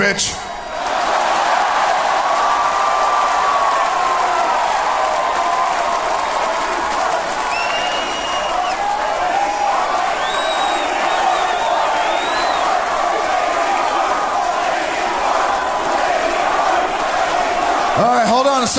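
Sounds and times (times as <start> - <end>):
arena crowd chanting and roaring: 0.0 - 18.7
shrill whistles: 7.4 - 13.0.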